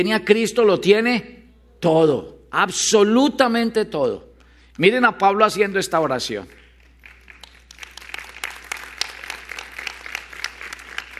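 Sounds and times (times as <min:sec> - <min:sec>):
speech: 0:00.0 - 0:06.6
audience applause: 0:06.8 - 0:11.1.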